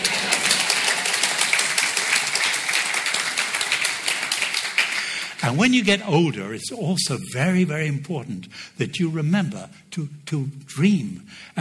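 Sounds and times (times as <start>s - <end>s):
audience applause: 0.0s - 5.7s
speech: 5.4s - 11.5s.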